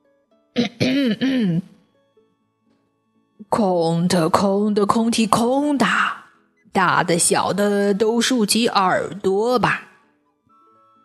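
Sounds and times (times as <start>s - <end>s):
throat clearing: 0.6s - 1.6s
speech: 0.6s - 1.7s, 3.5s - 6.2s, 6.8s - 9.9s.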